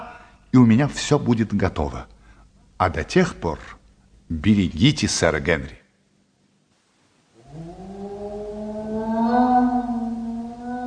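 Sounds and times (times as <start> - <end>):
speech: 0.5 - 2.2, 2.8 - 5.8
dog howling: 7.4 - 10.8.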